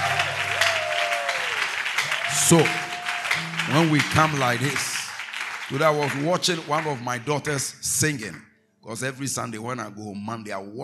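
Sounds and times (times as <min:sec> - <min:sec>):
audience clapping hands: 0:00.0 - 0:07.7
speech: 0:02.5 - 0:02.8, 0:03.7 - 0:04.9, 0:05.7 - 0:10.8.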